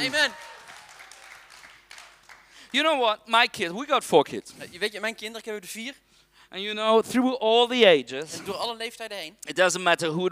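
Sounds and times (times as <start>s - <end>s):
speech: 0.0s - 0.5s, 2.7s - 10.3s
people clapping: 0.0s - 3.0s.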